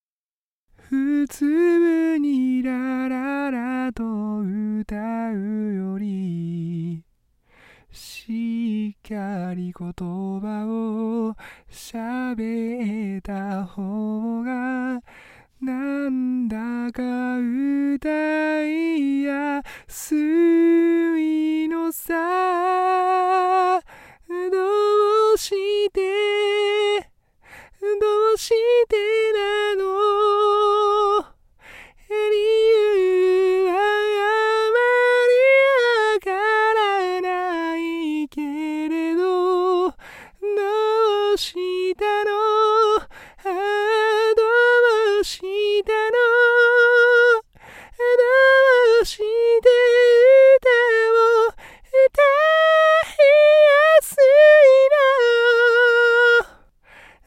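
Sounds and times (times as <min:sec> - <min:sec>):
vocals: 0:00.7 - 0:57.2.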